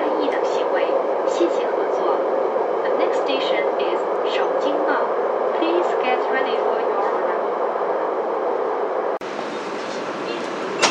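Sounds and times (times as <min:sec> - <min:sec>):
subway train arriving at Shoujingmao station: 0:00.0 - 0:10.8.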